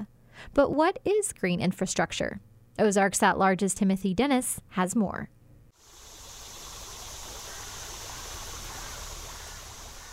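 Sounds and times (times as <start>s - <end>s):
speech: 0.4s - 5.4s
Skull Creek in Midtown Fayetteville flowing after late summer shower: 5.8s - 10.1s.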